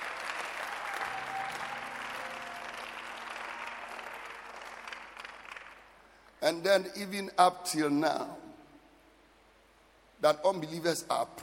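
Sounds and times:
audience clapping: 0:00.0 - 0:06.4
faint voices or cheers: 0:00.8 - 0:04.4
speech: 0:06.4 - 0:08.5, 0:10.2 - 0:11.4.

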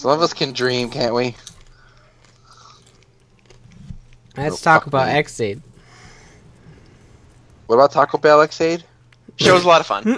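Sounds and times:
speech: 0:00.0 - 0:01.5, 0:04.4 - 0:05.7, 0:07.7 - 0:10.1
person chewing popcorn: 0:01.4 - 0:04.4.

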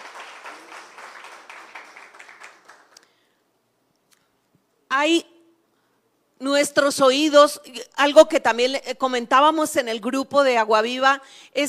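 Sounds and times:
audience applause: 0:00.0 - 0:03.3
speech: 0:05.0 - 0:05.3, 0:06.4 - 0:11.6.

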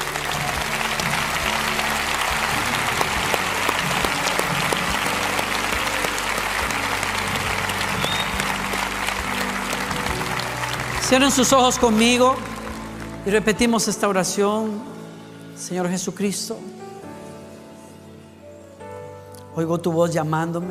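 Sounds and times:
large crowd applauding: 0:00.0 - 0:14.1
speech: 0:11.1 - 0:12.5, 0:13.2 - 0:15.0, 0:15.6 - 0:16.8, 0:19.6 - 0:20.6.

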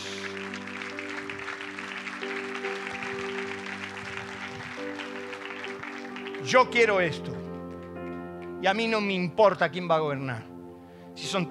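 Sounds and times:
audience clapping and cheering: 0:00.0 - 0:08.2
sustained keyboard chords: 0:00.0 - 0:11.4
speech: 0:06.5 - 0:07.4, 0:08.6 - 0:10.5, 0:11.2 - 0:11.4.

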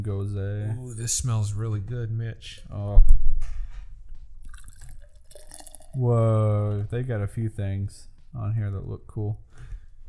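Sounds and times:
speech: 0:00.0 - 0:03.6, 0:06.0 - 0:09.5
beer being poured into a glass: 0:04.4 - 0:06.9.

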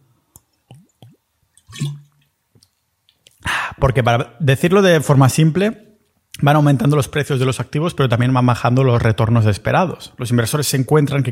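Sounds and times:
exaggerated wet gulping swallows: 0:00.6 - 0:03.4
speech: 0:03.8 - 0:05.8, 0:06.4 - 0:11.3.

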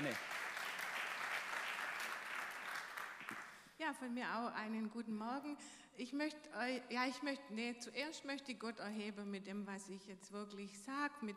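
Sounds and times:
audience applause: 0:00.0 - 0:03.6
speech: 0:00.1 - 0:00.3, 0:03.8 - 0:11.3.

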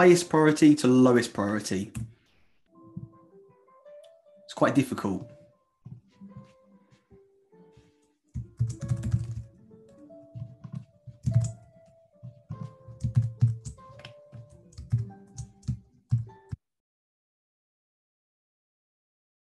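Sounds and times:
speech: 0:00.0 - 0:02.1, 0:04.5 - 0:05.4
fingers typing on a computer keyboard: 0:08.4 - 0:09.5, 0:10.6 - 0:11.6, 0:12.5 - 0:16.3.

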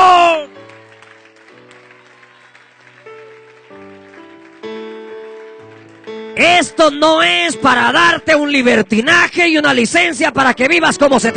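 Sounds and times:
audience applause: 0:00.0 - 0:07.3
speech: 0:06.4 - 0:11.3.

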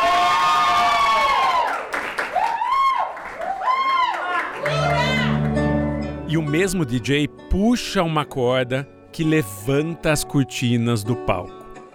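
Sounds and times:
audience applause in a bar: 0:00.0 - 0:06.1
speech: 0:06.6 - 0:11.6.

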